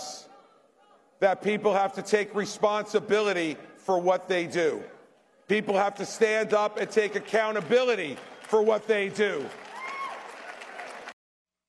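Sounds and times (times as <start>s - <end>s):
speech: 1.2s - 9.6s
audience applause: 6.2s - 11.2s.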